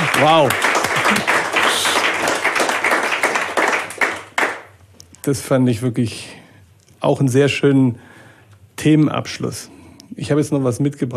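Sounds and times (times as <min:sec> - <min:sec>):
applause: 0:00.0 - 0:04.8
speech: 0:00.2 - 0:01.4, 0:05.2 - 0:06.4, 0:07.0 - 0:08.1, 0:08.8 - 0:11.1.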